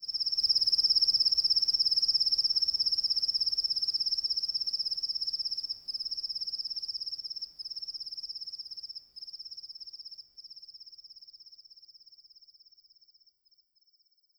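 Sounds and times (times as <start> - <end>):
Ahaggar crickets chirping: 0.0 - 10.6.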